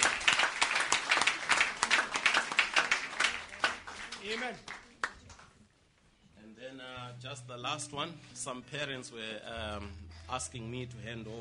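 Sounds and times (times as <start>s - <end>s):
audience clapping hands: 0.0s - 5.6s
speech: 4.3s - 4.8s, 7.2s - 11.4s.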